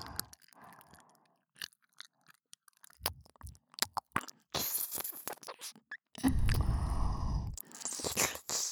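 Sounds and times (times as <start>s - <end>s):
ear licking loop: 3.0s - 8.7s.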